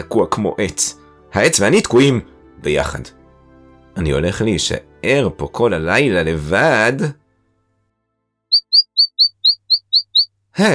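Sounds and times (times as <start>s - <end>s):
speech: 0.0s - 3.2s, 4.0s - 7.2s, 10.6s - 10.7s
two birds chirping in the dark: 8.5s - 10.3s.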